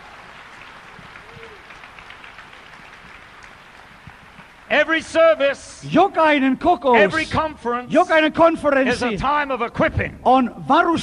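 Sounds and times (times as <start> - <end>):
audience clapping hands: 0.0 - 5.5
speech: 4.7 - 11.0.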